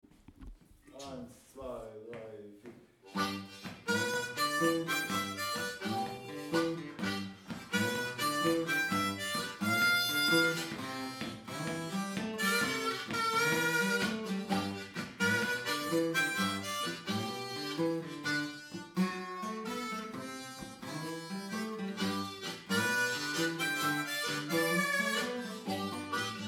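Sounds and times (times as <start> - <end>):
rumba blues music: 3.1 - 26.4.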